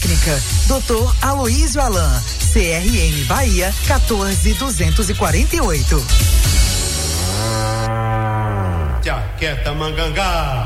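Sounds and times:
speech: 0.2s - 6.5s, 9.0s - 10.6s
ox mooing: 6.5s - 9.4s.

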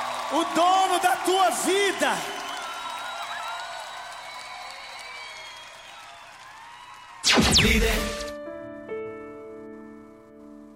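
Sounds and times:
audience applause: 0.0s - 7.2s
speech: 0.3s - 2.4s, 7.5s - 8.1s.

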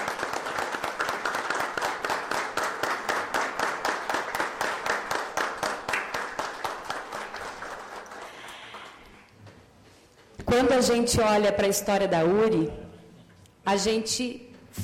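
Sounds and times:
audience applause: 0.0s - 9.0s
speech: 10.6s - 12.8s, 13.7s - 14.5s.

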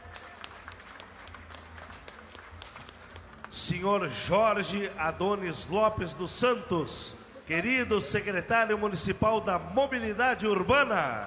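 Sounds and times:
audience applause: 0.0s - 3.5s
speech: 3.6s - 11.2s.

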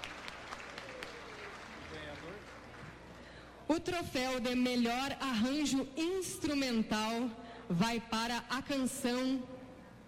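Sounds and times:
round of applause from audience: 0.0s - 3.0s
speech: 3.7s - 9.6s.

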